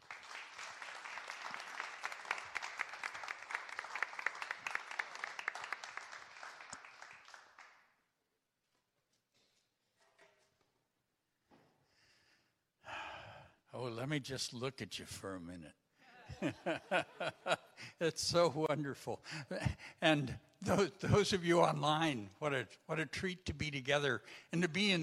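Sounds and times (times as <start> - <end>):
audience applause welcoming a speaker at a Unity church Sunday service: 0.0 - 7.8
speech: 13.9 - 15.8, 16.4 - 25.0
laughter: 16.1 - 22.2.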